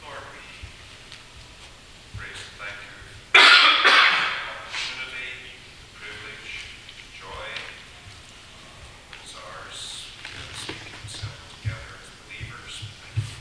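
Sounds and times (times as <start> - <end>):
low talk: 0.0 - 13.3
man clearing throat and coughing: 3.3 - 4.6.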